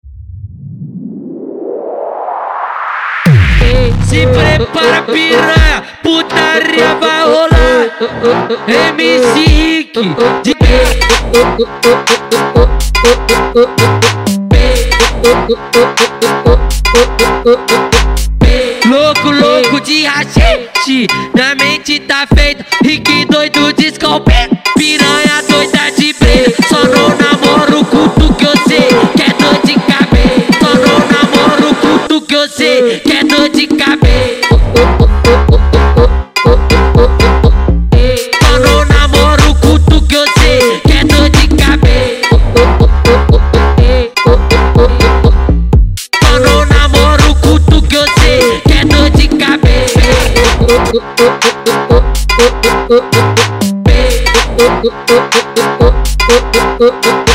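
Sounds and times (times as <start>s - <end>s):
mega funk music: 3.3s - 32.2s, 33.1s - 57.3s.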